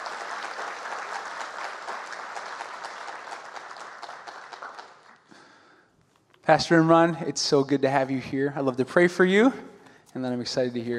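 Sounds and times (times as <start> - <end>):
audience applause: 0.0 - 5.6
speech: 6.5 - 10.9.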